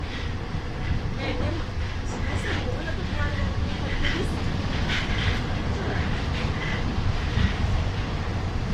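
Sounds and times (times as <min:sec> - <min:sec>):
metro train accelerating: 0:00.0 - 0:08.7.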